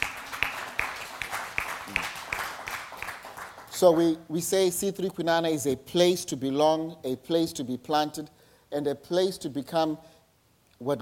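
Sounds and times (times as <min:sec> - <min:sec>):
church congregation applauding a speaker: 0:00.0 - 0:03.8
speech: 0:03.8 - 0:10.1, 0:10.8 - 0:10.9.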